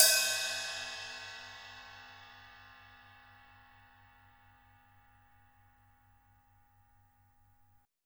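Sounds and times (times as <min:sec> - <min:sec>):
acoustic drum kit ride cymbal: 0:00.0 - 0:05.0.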